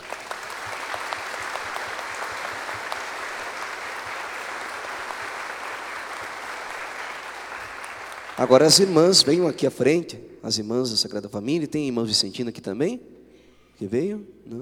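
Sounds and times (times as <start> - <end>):
audience applause: 0.0 - 9.5
speech: 8.4 - 13.1, 13.8 - 14.6.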